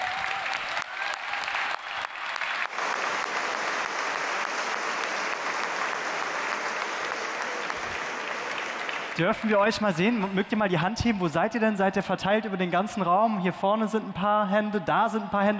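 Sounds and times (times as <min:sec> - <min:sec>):
audience applause for award nominees: 0:00.0 - 0:10.6
speech: 0:09.2 - 0:15.5.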